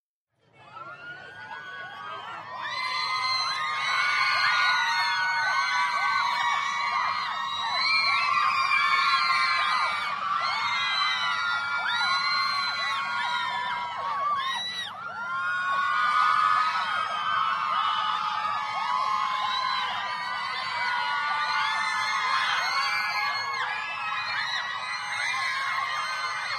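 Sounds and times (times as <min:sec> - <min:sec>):
medium crowd of teenage girls: 0:00.4 - 0:26.5.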